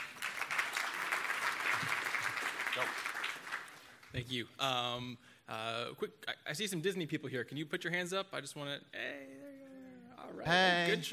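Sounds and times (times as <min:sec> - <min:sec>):
audience applause welcoming a speaker: 0:00.0 - 0:04.1
speech: 0:02.8 - 0:03.1, 0:04.1 - 0:09.4, 0:10.2 - 0:11.1.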